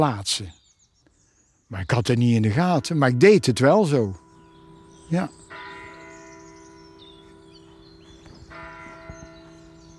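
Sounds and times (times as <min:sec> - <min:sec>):
speech: 0:00.0 - 0:00.6, 0:01.7 - 0:04.2, 0:05.1 - 0:05.6
church bell ringing: 0:02.0 - 0:09.9.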